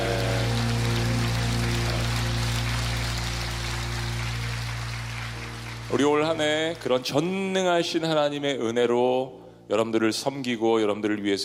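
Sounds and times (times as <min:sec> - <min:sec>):
audience applause: 0:00.0 - 0:07.3
speech: 0:05.9 - 0:11.4.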